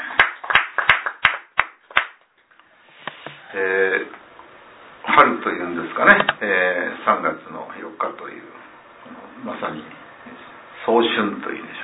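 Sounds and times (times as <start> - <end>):
audience clapping in unison: 0.0 - 2.3
speech: 3.5 - 4.2, 5.2 - 11.8.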